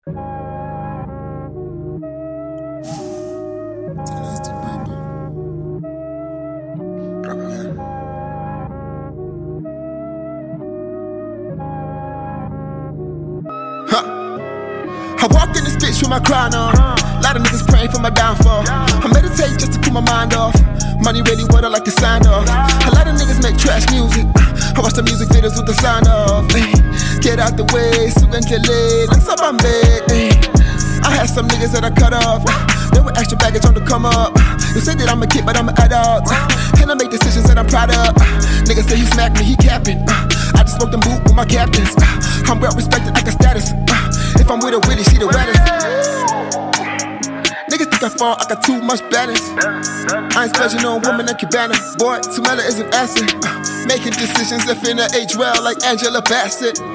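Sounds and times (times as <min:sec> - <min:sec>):
freestyle music: 0:00.0 - 0:56.9.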